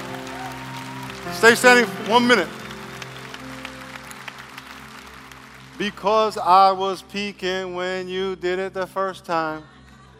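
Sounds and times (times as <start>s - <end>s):
large crowd cheering and applauding: 0.0s - 6.8s
speech: 1.2s - 2.6s, 5.8s - 9.7s.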